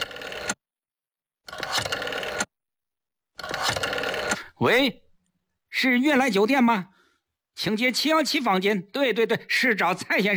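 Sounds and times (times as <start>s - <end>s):
telephone number being dialed: 0.0s - 0.6s, 1.5s - 2.5s, 3.4s - 4.5s
speech: 4.6s - 5.0s, 5.8s - 6.9s, 7.6s - 10.3s.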